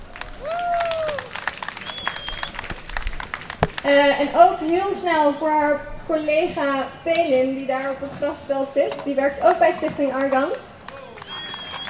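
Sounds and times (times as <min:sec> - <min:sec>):
audience applause at an outdoor youth commemoration against racism and fascism: 0:00.0 - 0:03.9, 0:10.5 - 0:11.8
high whistle-like tones: 0:01.8 - 0:02.6, 0:11.2 - 0:11.8
speech: 0:03.8 - 0:10.7.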